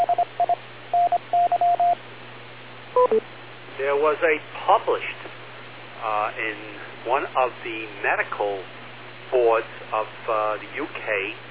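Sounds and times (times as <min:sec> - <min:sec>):
beep: 0:00.0 - 0:02.0, 0:03.0 - 0:03.2
speech: 0:04.1 - 0:05.2, 0:06.0 - 0:11.4.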